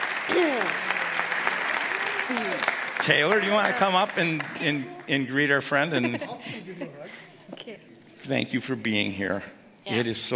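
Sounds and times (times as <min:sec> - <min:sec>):
congregation applause during a church service: 0:00.0 - 0:05.9
speech: 0:02.3 - 0:10.3
laughter: 0:05.6 - 0:07.4.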